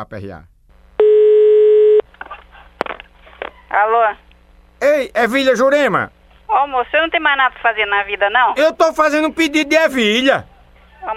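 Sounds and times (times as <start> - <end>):
speech: 0.0 - 0.5, 3.7 - 11.1
telephone tone as a call is placed: 1.0 - 2.1.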